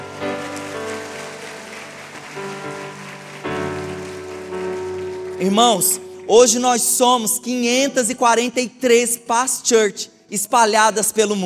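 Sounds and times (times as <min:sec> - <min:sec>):
audience applauding: 0:00.0 - 0:06.6
speech: 0:05.4 - 0:11.4.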